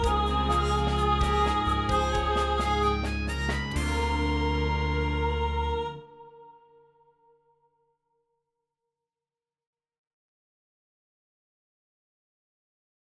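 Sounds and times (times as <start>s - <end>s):
soprano singing second part: 0.0s - 6.8s.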